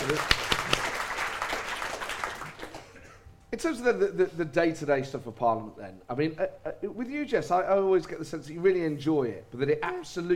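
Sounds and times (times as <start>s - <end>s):
audience applause: 0.0s - 3.0s
speech: 0.1s - 0.3s, 3.6s - 10.3s.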